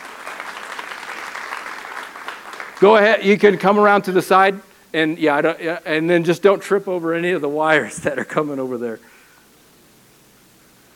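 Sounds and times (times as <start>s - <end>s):
audience applause: 0.0s - 4.0s
speech: 2.8s - 9.1s.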